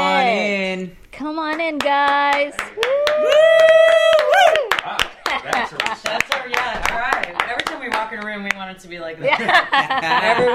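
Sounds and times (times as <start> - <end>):
speech: 1.2 - 3.7, 5.4 - 10.5
crowd applause in studio: 2.8 - 8.0
laughter: 5.3 - 6.5, 9.2 - 10.5.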